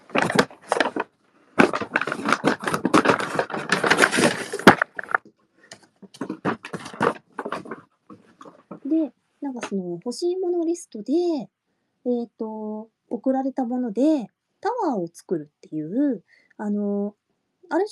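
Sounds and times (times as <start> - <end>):
paper bag being torn apart: 0.0 - 5.2
speech: 9.8 - 17.8.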